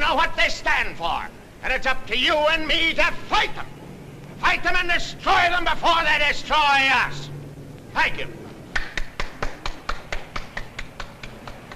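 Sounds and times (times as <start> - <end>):
speech: 0.1 - 3.8, 4.4 - 7.3, 7.9 - 8.4
lone person clapping: 8.7 - 11.7.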